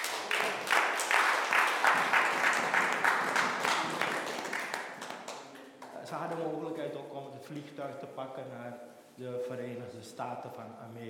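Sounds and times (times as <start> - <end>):
audience applause: 0.0 - 5.9
speech: 7.8 - 11.0.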